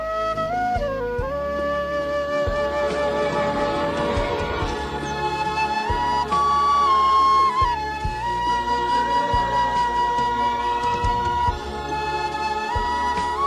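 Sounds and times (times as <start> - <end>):
flute-playing ringtone: 0.0 - 13.4.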